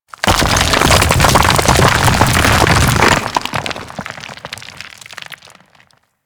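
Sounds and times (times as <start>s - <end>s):
golem melee submerge: 0.1s - 6.0s.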